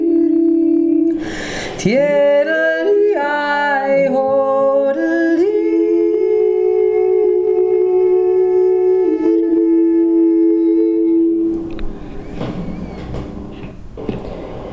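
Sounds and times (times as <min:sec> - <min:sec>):
South Tyrolean upper voice singing: 0:00.0 - 0:11.7.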